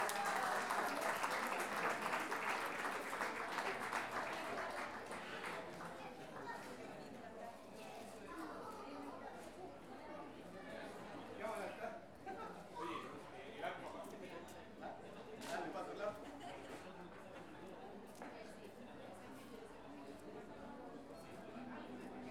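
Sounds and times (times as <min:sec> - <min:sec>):
audience applause at a national payador competition: 0:00.0 - 0:05.7
crowd chatter: 0:00.0 - 0:22.3.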